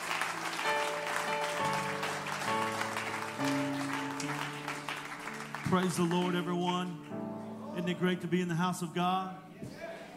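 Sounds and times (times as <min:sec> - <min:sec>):
church congregation applauding a visiting missionary couple: 0:00.0 - 0:07.3
speech: 0:05.7 - 0:07.2, 0:07.8 - 0:09.8.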